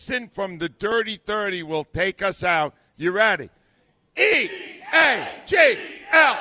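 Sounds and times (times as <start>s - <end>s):
speech: 0.0s - 3.6s, 4.2s - 6.3s
crowd shouting a team cheer in unison: 4.2s - 6.3s.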